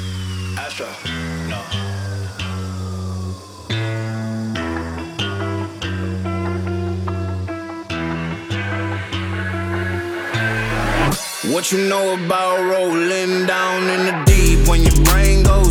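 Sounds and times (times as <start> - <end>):
music mashup: 4.6 - 15.6.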